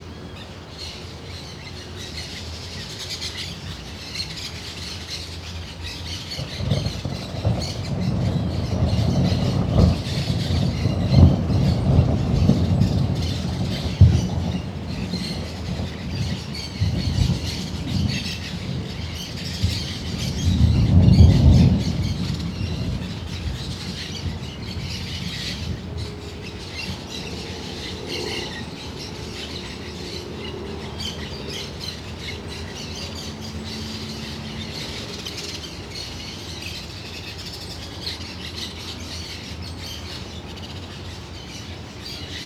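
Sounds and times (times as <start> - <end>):
many birds: 0.0 - 42.4
traffic: 0.0 - 42.4
long thunder heard from a veranda: 5.9 - 39.4.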